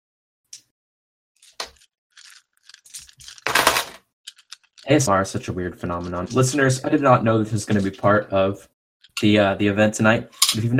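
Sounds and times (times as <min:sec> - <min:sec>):
physical dice being rolled: 0:01.4 - 0:05.1, 0:05.8 - 0:06.8
speech: 0:04.9 - 0:10.7.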